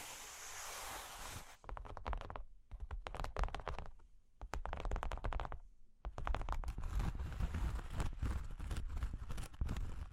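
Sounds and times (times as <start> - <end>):
steady bright hiss of rubbing: 0.0 - 1.6
cork and wood being tapped and scratched: 1.6 - 10.1.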